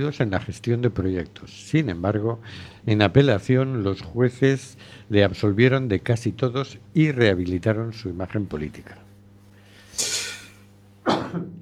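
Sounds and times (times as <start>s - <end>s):
speech: 0.0s - 9.0s
person sneezing: 11.0s - 11.5s.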